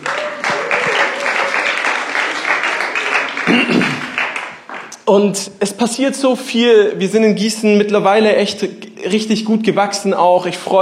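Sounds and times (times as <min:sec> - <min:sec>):
audience applause: 0:00.0 - 0:04.9
speech: 0:05.1 - 0:10.8.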